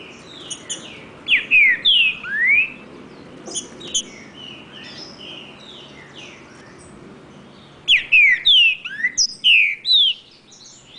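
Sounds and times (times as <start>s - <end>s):
wild green-winged saltator singing in the woods: 0.0s - 2.8s, 3.4s - 6.9s, 7.8s - 10.9s.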